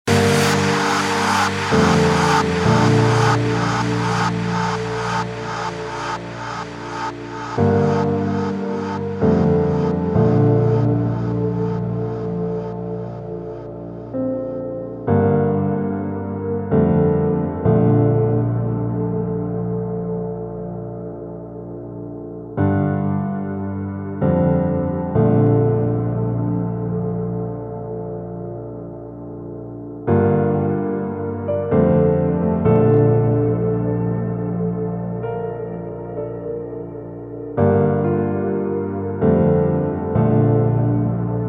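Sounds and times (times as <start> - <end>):
acoustic piano version: 0.0 - 41.4.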